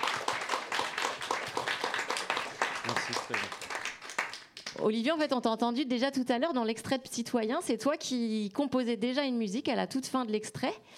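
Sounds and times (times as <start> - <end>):
audience clapping: 0.0 - 4.9
speech: 3.1 - 3.6, 4.8 - 10.9.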